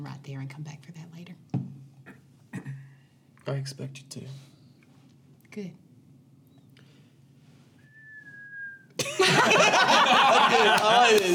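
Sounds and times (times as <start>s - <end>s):
speech: 0.0s - 1.2s, 3.4s - 4.5s, 5.6s - 5.8s
whistled bird call imitation: 7.8s - 8.9s
laughter: 9.0s - 11.3s.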